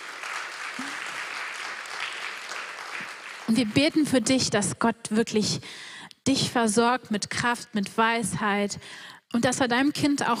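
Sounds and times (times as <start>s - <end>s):
audience applause: 0.0s - 4.0s
speech: 3.5s - 10.3s.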